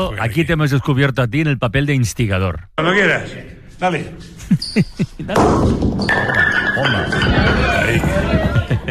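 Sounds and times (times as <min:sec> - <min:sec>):
speech: 0:00.0 - 0:08.8
laughter: 0:04.2 - 0:05.7, 0:07.2 - 0:08.8
bowling pins being knocked down: 0:05.2 - 0:08.4
bowling ball thuds: 0:05.3 - 0:07.8
crowd noise and voices: 0:07.0 - 0:08.8.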